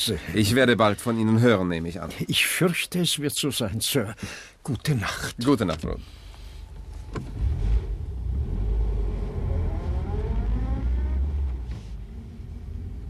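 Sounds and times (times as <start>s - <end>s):
speech: 0.0s - 6.2s, 7.1s - 7.5s
car engine rumbling as the car pulls up to the curb and stops: 5.9s - 13.0s.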